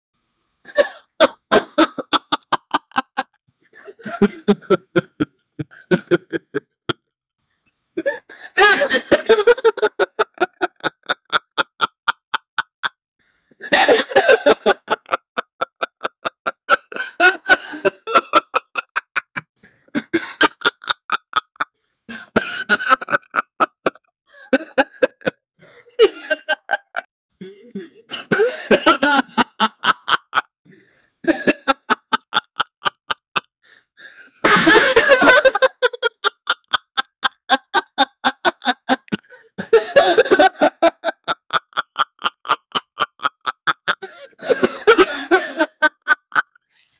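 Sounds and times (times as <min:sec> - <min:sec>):
man giggling: 0:00.7 - 0:06.7, 0:08.0 - 0:13.0, 0:13.6 - 0:30.5, 0:31.2 - 0:46.6.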